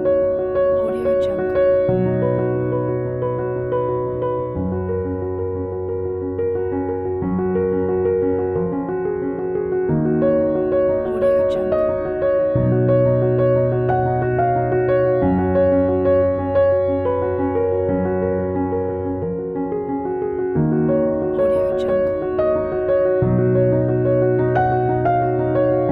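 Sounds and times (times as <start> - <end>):
piano: 0.0 - 25.8.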